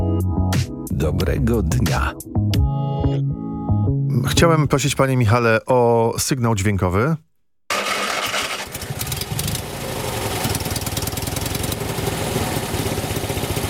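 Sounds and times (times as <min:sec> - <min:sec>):
speech: 0:00.2 - 0:03.3, 0:04.1 - 0:07.3
small Fiat car engine starting and idling: 0:07.7 - 0:13.6.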